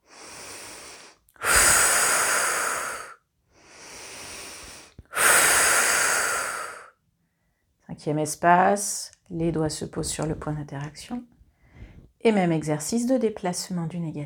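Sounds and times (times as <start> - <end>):
slow breathing during a guided relaxation exercise: 0.0 - 7.6, 11.5 - 12.1
speech: 8.0 - 11.3, 12.2 - 14.2.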